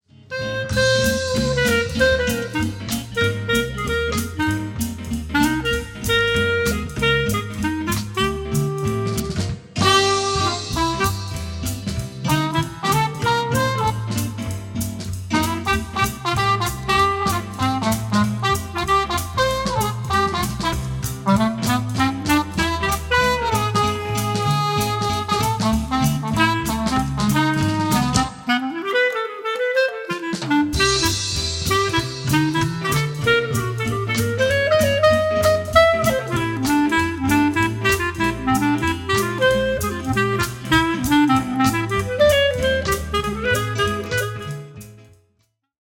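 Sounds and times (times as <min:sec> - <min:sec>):
clarinet: 0:00.2 - 0:45.1.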